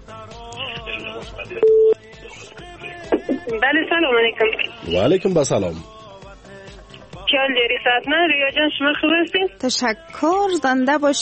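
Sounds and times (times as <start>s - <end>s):
melodic music with steady rhythmic pulses: 0.0s - 11.2s
speech: 1.2s - 2.8s, 3.4s - 6.0s, 7.3s - 11.2s
telephone beep as the next caller's number is dialed on a call-in show: 1.6s - 2.0s.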